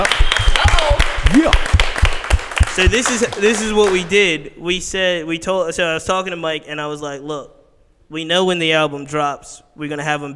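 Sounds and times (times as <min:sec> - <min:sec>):
rhythmic audience applause: 0:00.0 - 0:04.3
speech: 0:02.8 - 0:10.3.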